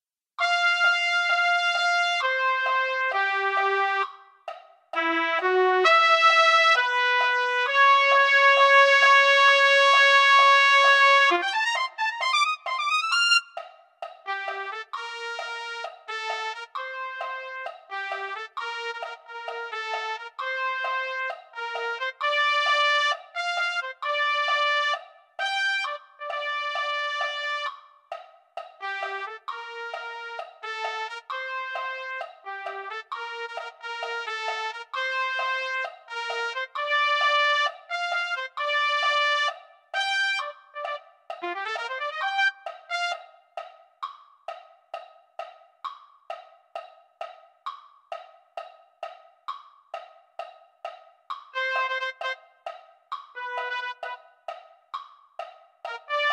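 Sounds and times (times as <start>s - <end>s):
trumpet: 0.4s - 13.5s, 14.3s - 27.8s, 28.8s - 43.4s, 51.5s - 52.5s, 53.4s - 54.5s, 55.8s - 56.3s.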